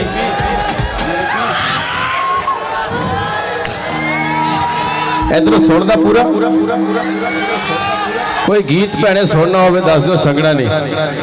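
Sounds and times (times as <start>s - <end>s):
audience cheering at a live song performance: 0.1s - 5.3s, 6.2s - 9.0s
speech: 5.3s - 11.2s.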